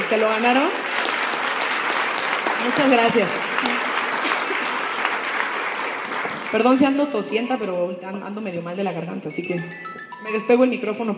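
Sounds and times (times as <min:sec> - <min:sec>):
audience applause: 0:00.0 - 0:07.1
speech: 0:00.1 - 0:00.8, 0:02.6 - 0:03.8, 0:06.5 - 0:11.1.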